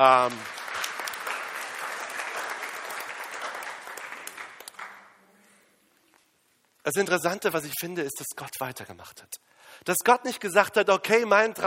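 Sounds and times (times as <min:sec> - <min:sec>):
speech: 0:00.0 - 0:00.6, 0:06.9 - 0:11.6
audience clapping: 0:00.0 - 0:05.2.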